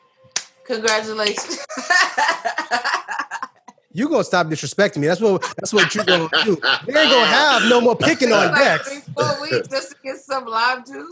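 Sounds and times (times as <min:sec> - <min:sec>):
slow sarcastic hand clapping: 0:00.3 - 0:01.6
speech: 0:00.7 - 0:03.0, 0:04.0 - 0:11.0
laughter: 0:01.4 - 0:03.7, 0:05.2 - 0:09.9.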